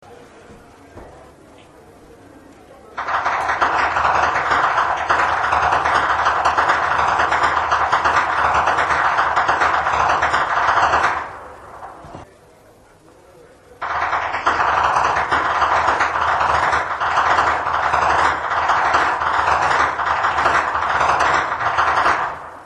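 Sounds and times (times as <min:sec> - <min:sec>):
whip cracking in Flachgau: 0:03.0 - 0:12.1, 0:13.8 - 0:22.6.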